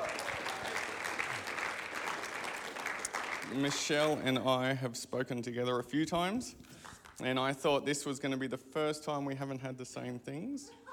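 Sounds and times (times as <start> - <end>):
crowd clapping: 0.0 - 4.2
speech: 3.5 - 10.9.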